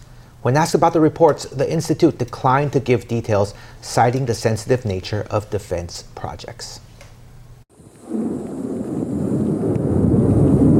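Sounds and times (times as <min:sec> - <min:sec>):
speech: 0:00.4 - 0:06.9
roar of anti-ballistic missile launch: 0:07.8 - 0:10.7.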